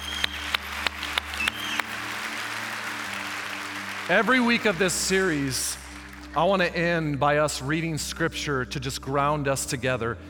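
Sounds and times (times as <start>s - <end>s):
audience clapping: 0.0s - 6.9s
speech: 4.1s - 10.2s.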